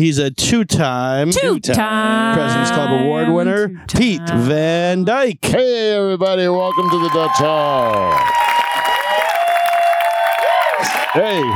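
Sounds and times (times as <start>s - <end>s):
speech: 0.0s - 8.6s, 10.8s - 11.5s
live audience applause and cheering: 6.6s - 11.5s.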